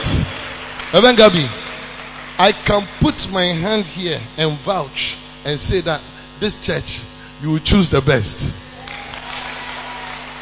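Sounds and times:
audience clapping: 0.0s - 2.9s, 8.8s - 10.3s
speech: 0.9s - 1.6s, 2.4s - 8.6s.

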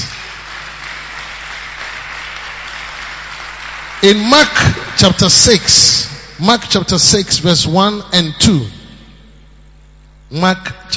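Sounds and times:
audience applause: 0.0s - 5.6s
speech: 4.0s - 8.8s, 10.3s - 10.9s.

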